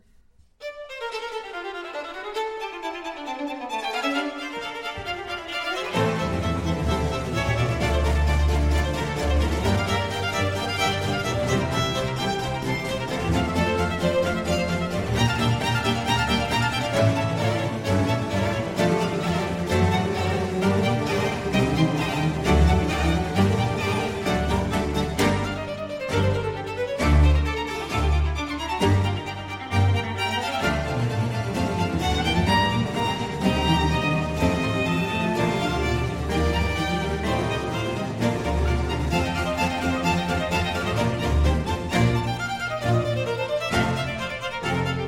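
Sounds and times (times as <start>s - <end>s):
strings playing an allegro in D minor: 0.6s - 45.0s.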